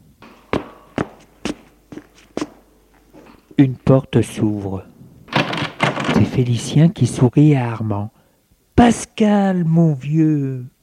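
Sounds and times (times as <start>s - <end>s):
heel footsteps on a hard corridor floor: 0.2s - 3.6s
speech: 3.6s - 4.9s, 6.2s - 8.2s, 8.8s - 10.7s.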